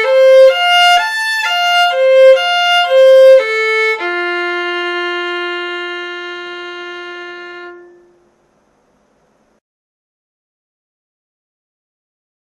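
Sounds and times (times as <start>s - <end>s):
scale and arpeggios in F major: 0.0s - 8.3s.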